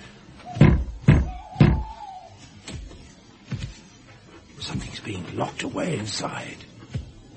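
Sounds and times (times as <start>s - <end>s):
knocking on a wooden door: 0.6s - 1.9s
speech: 4.7s - 6.7s.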